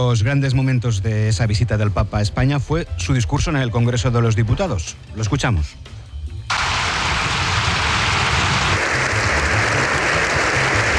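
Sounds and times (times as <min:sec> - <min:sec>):
speech: 0:00.0 - 0:06.0
long standing ovation in parliament: 0:06.5 - 0:10.9.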